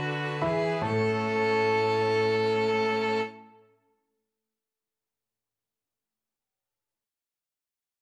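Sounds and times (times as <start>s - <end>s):
piano quintet playing: 0.0s - 3.5s.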